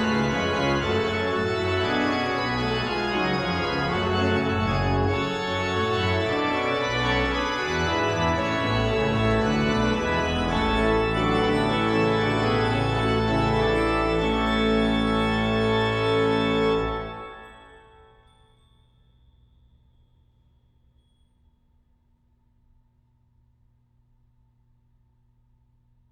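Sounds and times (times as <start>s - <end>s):
chorale prelude: 0.0s - 18.4s.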